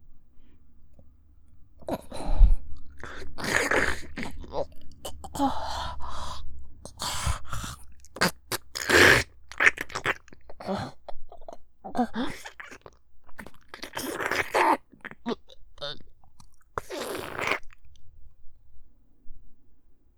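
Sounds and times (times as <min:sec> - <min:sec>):
deep throat fellatio sounds with gagging: 0:01.8 - 0:17.8.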